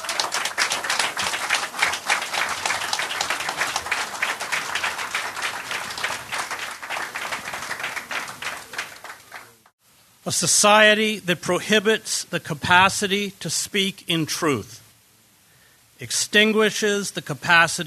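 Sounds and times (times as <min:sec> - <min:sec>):
audience applause welcoming a speaker at an evening event: 0:00.0 - 0:09.7
speech: 0:10.3 - 0:14.8, 0:16.0 - 0:17.8.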